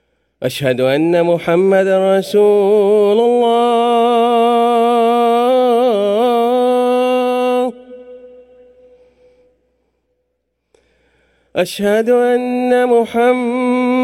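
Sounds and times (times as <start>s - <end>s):
second Friday call to prayer: 0.4s - 9.1s, 11.6s - 14.0s.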